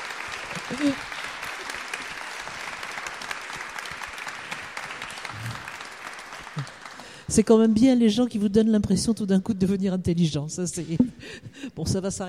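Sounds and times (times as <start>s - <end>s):
audience applause: 0.0s - 7.3s
speech: 0.7s - 1.1s, 7.3s - 12.2s.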